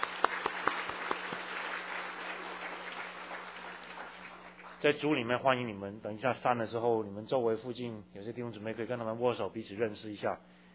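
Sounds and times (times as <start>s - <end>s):
audience applause: 0.0s - 5.1s
speech: 4.8s - 10.6s.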